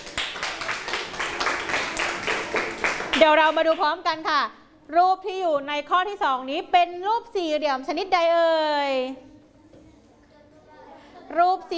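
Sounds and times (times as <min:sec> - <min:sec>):
classroom of children clapping: 0:00.0 - 0:03.8
speech: 0:03.2 - 0:09.3, 0:11.3 - 0:11.7.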